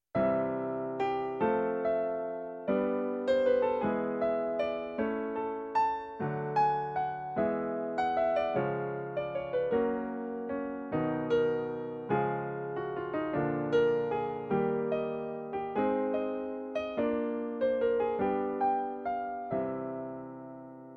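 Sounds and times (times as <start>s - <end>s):
jazz piano in a major key: 0.1s - 20.9s.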